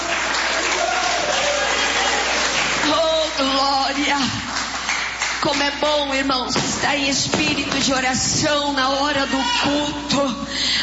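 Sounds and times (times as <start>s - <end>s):
church congregation clapping during a worship service: 0.0s - 3.4s, 4.0s - 5.8s
speech: 5.4s - 10.8s.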